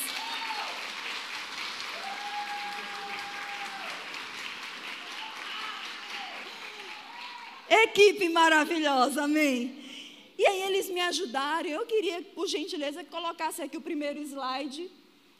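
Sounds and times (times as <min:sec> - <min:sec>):
voices cheering: 0:00.0 - 0:00.9, 0:01.9 - 0:04.2, 0:04.9 - 0:07.7
audience applause: 0:00.0 - 0:07.7
speech: 0:07.7 - 0:09.8, 0:10.4 - 0:15.0.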